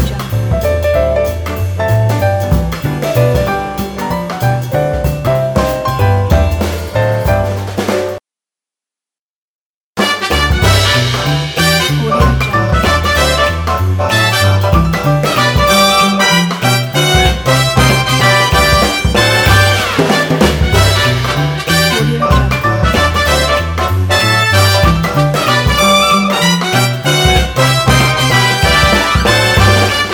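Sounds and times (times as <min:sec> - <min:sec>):
lively jazz loop: 0:00.0 - 0:08.2, 0:10.0 - 0:30.1.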